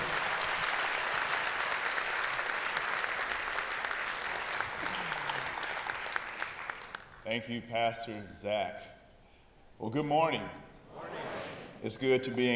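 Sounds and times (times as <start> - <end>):
church congregation applauding a pastor at a morning service: 0.0 - 7.3
speech: 7.3 - 9.0, 9.8 - 10.6, 11.8 - 12.5.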